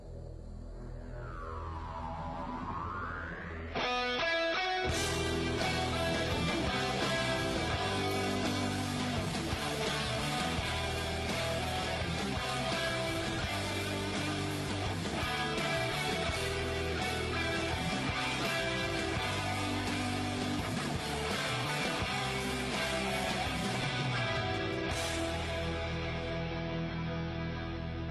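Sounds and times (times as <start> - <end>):
swooping sweeping tone: 0.1 - 4.1
rock band playing a children's song arrangement: 3.7 - 28.0.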